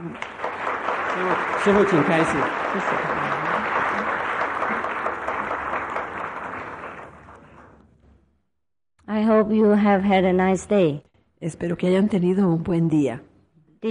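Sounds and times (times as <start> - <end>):
audience applause: 0.0 - 7.8
speech: 1.2 - 3.4, 9.3 - 13.8.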